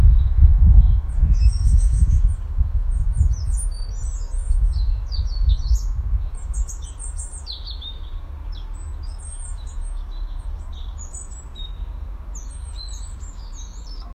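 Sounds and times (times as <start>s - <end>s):
distant birds tweeting: 0.0s - 14.1s.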